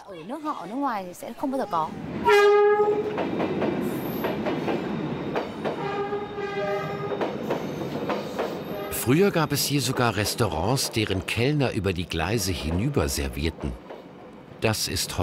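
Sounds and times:
speech: 0.1s - 4.4s, 9.0s - 13.9s, 14.6s - 15.2s
train rumbling past: 1.8s - 15.2s
train horn blasts: 2.2s - 3.2s, 5.8s - 7.4s, 8.6s - 9.2s.

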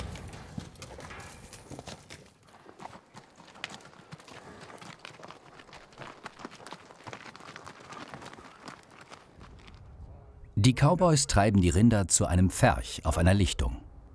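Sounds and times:
horses galloping: 0.0s - 10.0s
speech: 10.6s - 13.8s.

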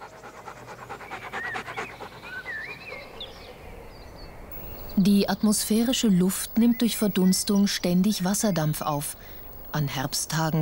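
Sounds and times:
dog panting: 0.0s - 3.5s
faint bird chirps: 0.0s - 10.5s
soft hiss: 0.0s - 10.5s
speech: 5.0s - 10.5s.

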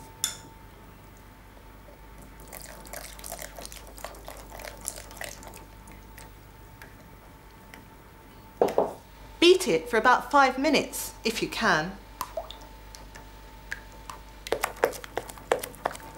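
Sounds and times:
water poured into flour mixture: 2.4s - 5.7s
speech: 9.6s - 12.0s.

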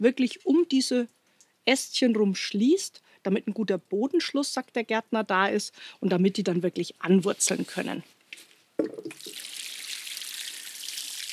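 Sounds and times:
speech: 0.0s - 9.4s
rainwater pouring onto newly planted soil: 9.1s - 11.3s.

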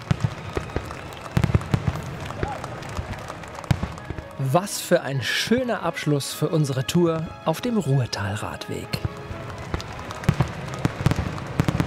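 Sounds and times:
fireworks: 0.0s - 4.4s, 8.9s - 11.8s
speech: 4.5s - 9.1s.

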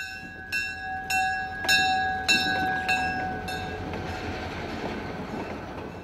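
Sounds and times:
diesel locomotive pulling passenger cars: 0.0s - 6.0s.

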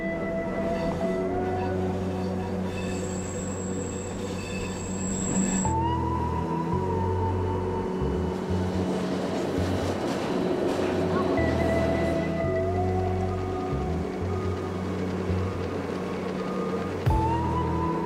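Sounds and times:
train travelling on rails: 0.0s - 18.0s.

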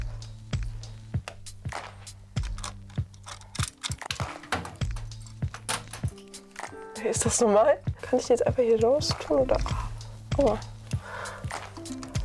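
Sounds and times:
clicks from unscrewing the side screws of a wall socket: 2.4s - 6.4s
speech: 7.0s - 9.8s, 10.4s - 10.7s.

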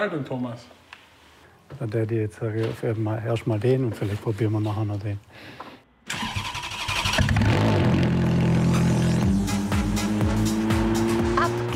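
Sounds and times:
speech: 0.0s - 0.8s, 1.7s - 6.3s
Ferrari F430 engine revving and accelerating: 7.2s - 11.7s.

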